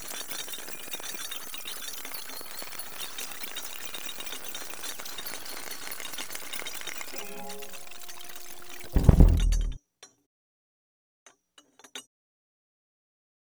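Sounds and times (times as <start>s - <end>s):
music stems in initial state: 7.2s - 9.8s.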